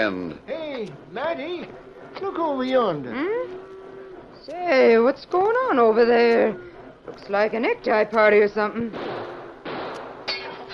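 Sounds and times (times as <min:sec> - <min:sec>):
speech: 0:00.0 - 0:03.7, 0:04.4 - 0:09.2
gunfire: 0:08.8 - 0:10.7
smashing glass: 0:09.0 - 0:10.7.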